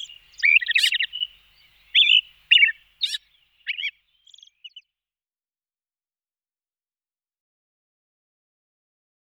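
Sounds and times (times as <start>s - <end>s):
Austral thrush calling: 0.0s - 4.5s.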